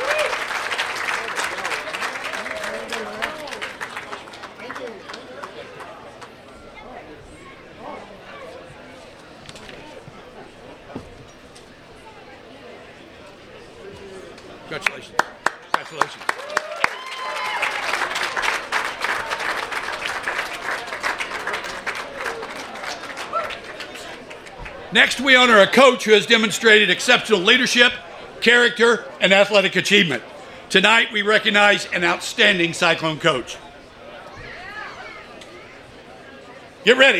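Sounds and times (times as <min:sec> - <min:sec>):
audience applause for hall of fame inductee: 0:00.0 - 0:06.4, 0:14.7 - 0:25.9
speech: 0:14.8 - 0:15.3, 0:25.0 - 0:33.6, 0:36.8 - 0:37.1.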